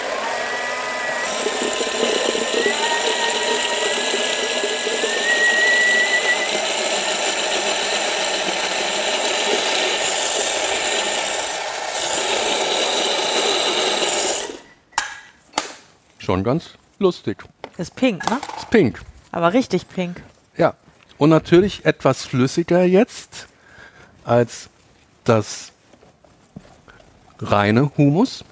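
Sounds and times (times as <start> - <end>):
blender mixing hummus with beetroot: 0.0 - 15.1
speech: 16.3 - 23.5, 24.2 - 24.7, 25.3 - 25.7, 27.4 - 28.5.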